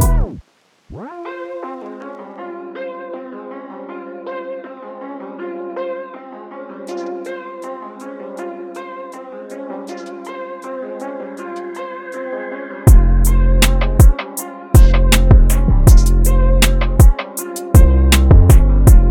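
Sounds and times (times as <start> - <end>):
purple trap sample pack: 0.0 - 0.3, 6.9 - 12.2, 12.9 - 19.0.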